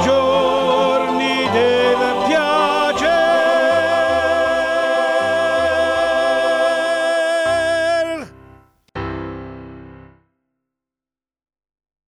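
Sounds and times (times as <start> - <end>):
sopranos singing: 0.0 - 8.3.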